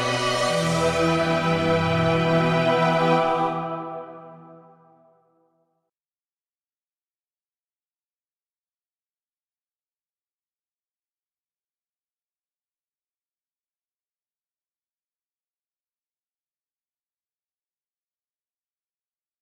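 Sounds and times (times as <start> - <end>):
big dramatic music: 0.0 - 4.6.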